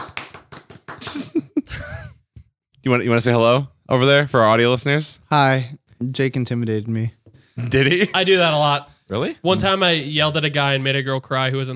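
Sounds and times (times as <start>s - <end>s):
single hand clap for audio sync: 0.0s - 1.4s
speech: 2.8s - 11.7s.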